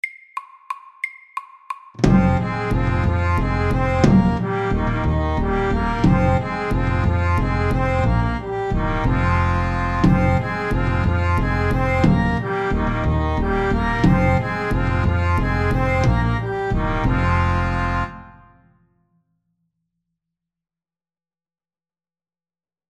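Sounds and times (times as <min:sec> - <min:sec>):
fast music: 0:00.0 - 0:18.3.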